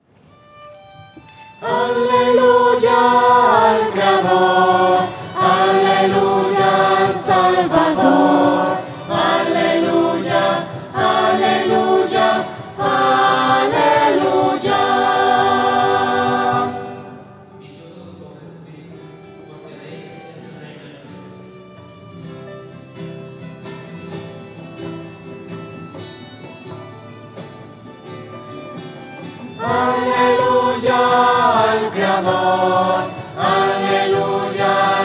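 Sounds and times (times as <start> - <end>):
voices singing hallelujah to the creator: 1.6 - 17.5, 29.5 - 35.0.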